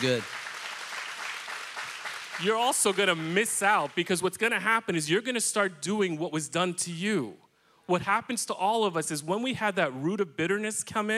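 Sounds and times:
speech: 0:00.0 - 0:00.4, 0:02.4 - 0:11.1
audience clapping: 0:00.0 - 0:04.1.

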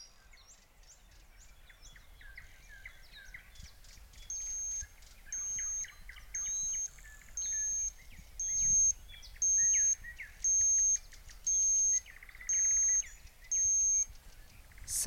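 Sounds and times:
faint bird chirps: 0:00.0 - 0:15.0
digital thermometer beeping: 0:04.3 - 0:14.1.

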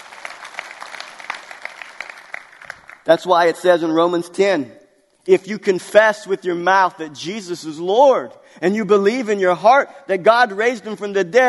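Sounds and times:
crowd applauding: 0:00.0 - 0:03.2
speech: 0:03.1 - 0:11.4.

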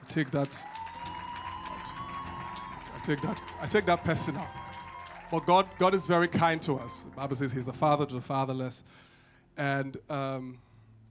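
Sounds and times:
audience clapping and cheering: 0:00.0 - 0:07.2
speech: 0:00.1 - 0:00.8, 0:03.1 - 0:04.6, 0:05.3 - 0:10.7
long whistle-like tone: 0:00.8 - 0:08.1.

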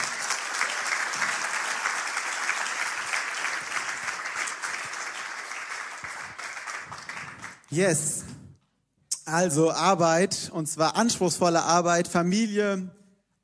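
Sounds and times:
audience applause: 0:00.0 - 0:07.7
speech: 0:07.7 - 0:08.3, 0:09.3 - 0:13.0.

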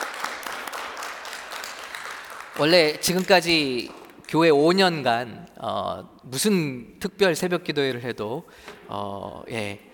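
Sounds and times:
audience applause: 0:00.0 - 0:02.8
speech: 0:02.6 - 0:09.9.

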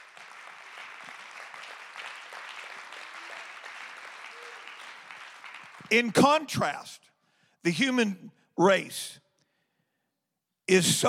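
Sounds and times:
audience clapping hands: 0:00.0 - 0:06.6
speech: 0:05.9 - 0:07.0, 0:07.6 - 0:09.2, 0:10.7 - 0:11.0.

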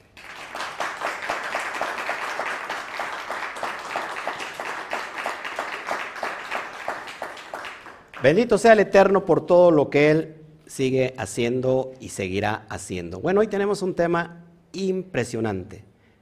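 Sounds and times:
strong applause: 0:00.0 - 0:08.6
speech: 0:08.2 - 0:15.8.

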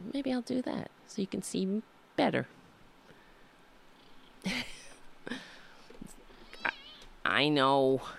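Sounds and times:
speech: 0:00.1 - 0:02.6, 0:07.3 - 0:08.1
cat meowing: 0:06.4 - 0:07.1.

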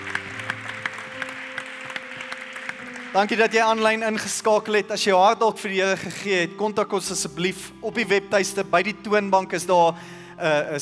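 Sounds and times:
church congregation applauding at the close of a Sunday service: 0:00.0 - 0:05.1
speech: 0:03.1 - 0:10.8.

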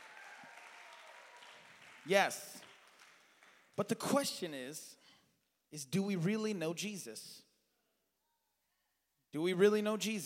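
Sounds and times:
audience clapping hands: 0:00.0 - 0:04.2
speech: 0:02.0 - 0:02.6, 0:03.8 - 0:05.0, 0:05.7 - 0:07.5, 0:09.3 - 0:10.2.

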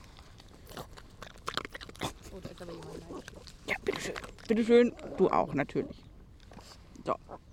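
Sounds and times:
dog crunching a biscuit: 0:00.0 - 0:05.3
speech: 0:02.4 - 0:06.0.

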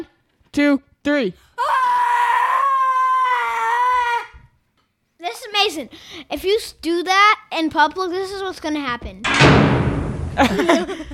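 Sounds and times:
speech: 0:00.0 - 0:01.8, 0:05.3 - 0:09.5, 0:10.4 - 0:11.1
person screaming as loud as possible: 0:01.6 - 0:04.4
laughter: 0:10.4 - 0:11.1.

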